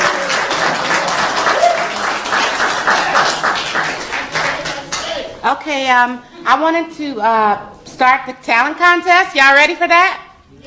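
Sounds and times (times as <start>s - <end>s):
audience applause: 0.0s - 5.0s
speech: 5.5s - 10.2s.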